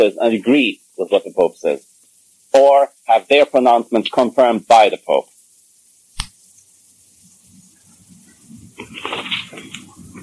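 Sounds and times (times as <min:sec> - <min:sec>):
speech: 0:00.0 - 0:01.9, 0:02.5 - 0:05.3
book pages being turned: 0:08.8 - 0:10.2.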